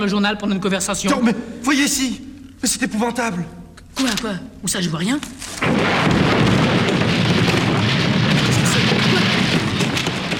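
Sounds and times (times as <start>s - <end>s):
speech: 0.0s - 6.6s
gas cylinders exploding in a workshop: 5.6s - 10.3s.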